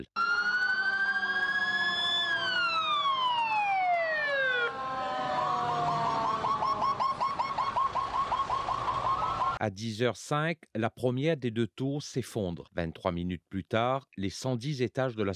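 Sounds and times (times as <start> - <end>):
emergency sirens wailing through a city: 0.0 - 9.6
speech: 9.6 - 15.3.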